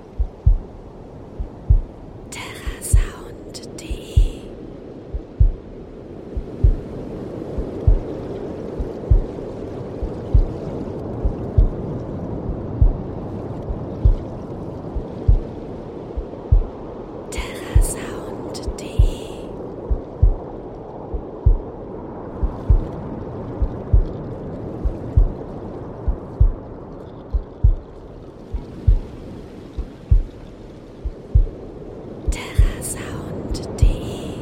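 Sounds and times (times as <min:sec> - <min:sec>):
waves: 0:00.0 - 0:34.4
heartbeat: 0:00.1 - 0:02.0, 0:02.6 - 0:03.3, 0:03.9 - 0:04.5, 0:05.1 - 0:05.7, 0:06.3 - 0:07.0, 0:07.6 - 0:08.2, 0:08.8 - 0:15.5, 0:16.2 - 0:16.9, 0:17.5 - 0:21.7, 0:22.4 - 0:25.4, 0:26.0 - 0:26.7, 0:27.3 - 0:30.4, 0:31.0 - 0:31.6, 0:32.3 - 0:32.8, 0:33.6 - 0:34.0.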